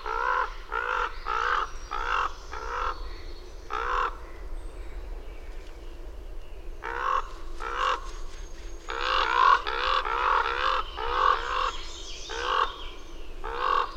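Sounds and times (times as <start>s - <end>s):
bird cawing hoarsely: 0.0s - 3.0s, 3.7s - 4.2s, 6.8s - 8.2s, 8.9s - 13.9s.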